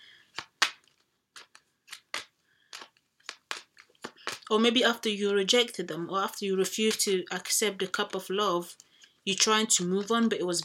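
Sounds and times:
tarot card pulled from the deck: 0.3s - 4.5s
speech: 4.5s - 10.6s.

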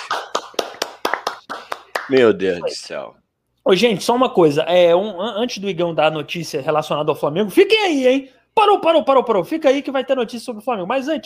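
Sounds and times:
applause for a podcast co-host: 0.0s - 2.3s
speech: 2.1s - 11.2s.

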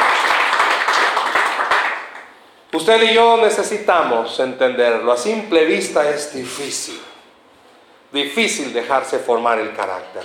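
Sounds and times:
audience applause: 0.0s - 2.3s
speech: 2.7s - 7.1s, 8.1s - 10.2s.

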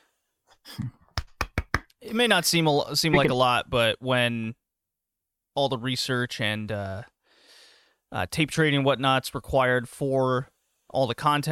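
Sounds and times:
speech: 0.7s - 1.0s, 2.1s - 4.6s, 5.6s - 7.1s, 8.1s - 11.5s
small polite golf claps: 1.1s - 2.0s.

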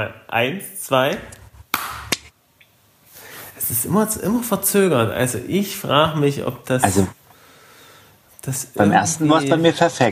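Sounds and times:
speech: 0.0s - 1.4s, 3.7s - 7.2s, 8.4s - 10.1s
hand clap for recording sync: 1.7s - 2.3s.

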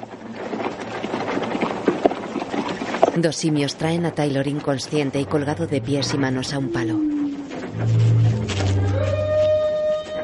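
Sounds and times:
horse hooves clopping: 0.0s - 10.2s
steady rumbling: 0.0s - 10.2s
speech: 3.2s - 7.2s, 7.8s - 8.3s.

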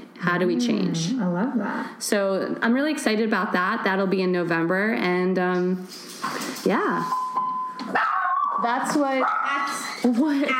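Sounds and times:
speech: 0.2s - 7.2s, 7.9s - 10.5s
dog barking and yipping: 7.9s - 10.5s.

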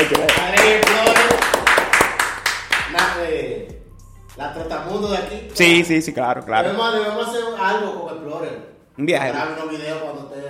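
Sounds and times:
sharp irregular hand claps: 0.0s - 3.2s
speech: 4.4s - 10.4s.

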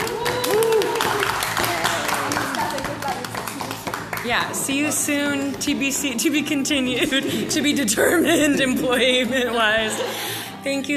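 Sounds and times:
voices calling out and cheering: 0.0s - 1.9s
group applauding: 0.0s - 5.0s
speech: 4.3s - 10.9s.

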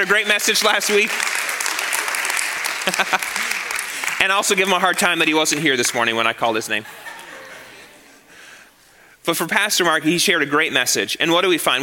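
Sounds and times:
speech: 0.0s - 1.4s, 2.9s - 3.6s, 4.2s - 7.1s, 9.2s - 11.8s
audience applause: 0.0s - 6.2s
laughter: 2.4s - 4.6s, 6.7s - 8.3s.

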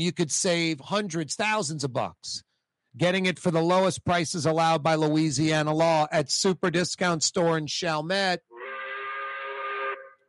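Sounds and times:
speech: 0.0s - 8.5s
five o'clock quitting-time whistle blast: 8.6s - 10.2s.

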